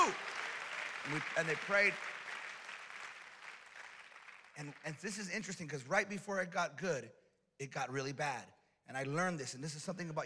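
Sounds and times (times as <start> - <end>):
audience clapping: 0.0 - 5.9
speech: 1.0 - 2.2, 4.6 - 10.2.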